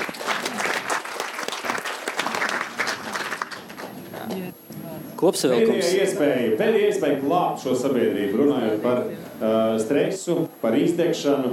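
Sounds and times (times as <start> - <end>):
audience applause: 0.0 - 4.3
speech: 5.2 - 11.5.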